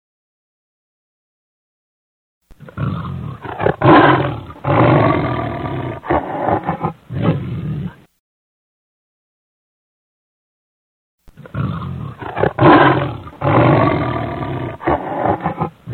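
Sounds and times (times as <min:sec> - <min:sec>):
lion roaring: 0:02.6 - 0:08.1, 0:11.4 - 0:15.9.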